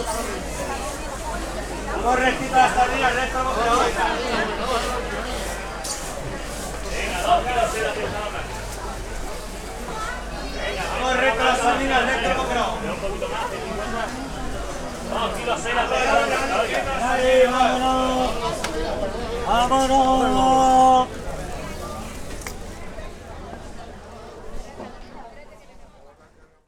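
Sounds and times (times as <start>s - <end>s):
town market ambience: 0.0s - 26.6s.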